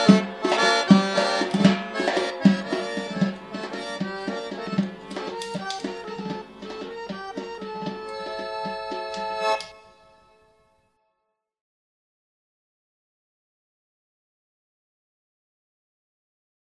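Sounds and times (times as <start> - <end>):
Georgian folk dance music: 0.0 - 10.6.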